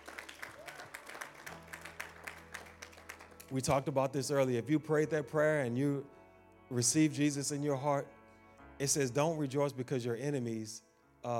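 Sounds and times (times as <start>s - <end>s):
audience hand clapping applause: 0.0s - 3.7s
speech: 3.5s - 8.2s, 8.8s - 11.3s.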